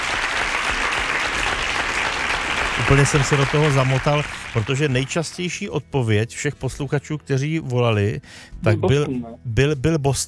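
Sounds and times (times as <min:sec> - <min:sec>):
recorded crowd applause sound effect: 0:00.0 - 0:05.2
speech: 0:02.9 - 0:10.2.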